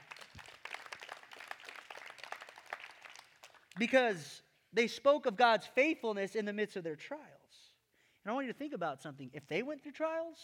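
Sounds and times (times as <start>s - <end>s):
audience clapping: 0.0s - 4.0s
speech: 3.8s - 7.3s, 8.2s - 10.4s.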